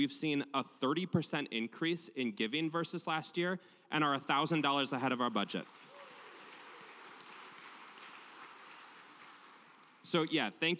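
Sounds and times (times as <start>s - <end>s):
speech: 0.0s - 5.9s, 10.0s - 10.7s
audience applause: 5.6s - 10.1s.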